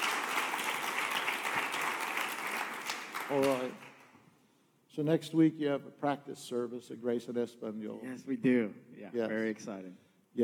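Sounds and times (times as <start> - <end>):
church gathering applauding a speaker: 0.0 - 4.1
speech: 3.3 - 3.9, 5.0 - 10.4.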